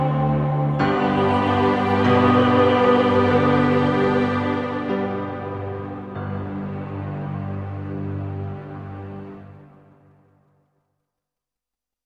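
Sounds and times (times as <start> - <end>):
virtual singing in Birmingham: 0.0 - 6.1.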